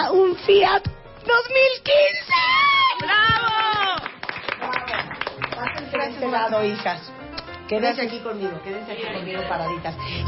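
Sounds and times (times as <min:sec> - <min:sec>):
speech: 0:00.4 - 0:03.5, 0:06.0 - 0:10.2
studio audience applause: 0:03.0 - 0:06.2.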